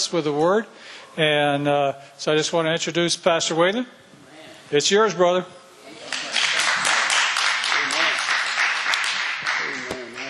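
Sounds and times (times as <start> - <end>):
speech: 0.1 - 4.0, 4.7 - 5.6
crowd clapping: 6.1 - 10.2.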